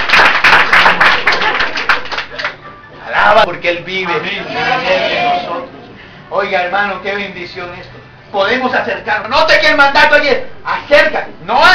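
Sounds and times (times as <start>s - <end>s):
church congregation clapping rhythmically: 0.0s - 2.6s
speech: 3.4s - 5.6s, 6.3s - 11.7s.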